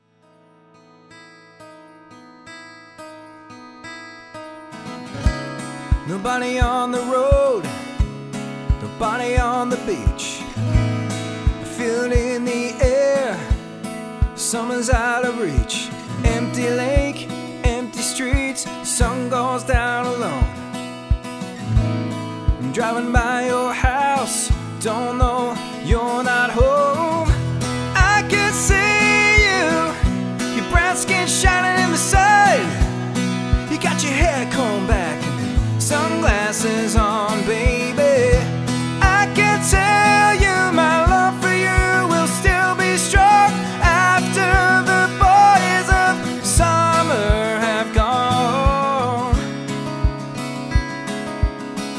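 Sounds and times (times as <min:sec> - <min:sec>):
solo acoustic music: 0:00.0 - 0:51.9.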